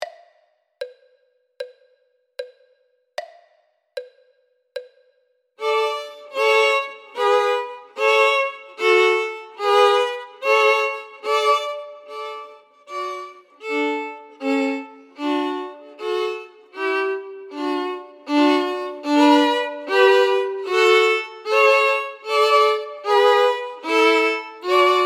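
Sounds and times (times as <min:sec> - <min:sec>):
first and second violins: 0:05.6 - 0:25.0.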